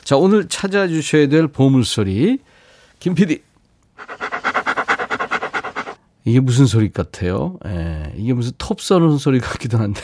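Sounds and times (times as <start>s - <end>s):
speech: 0.1s - 4.1s, 6.3s - 10.0s
dog panting after running: 4.0s - 6.0s.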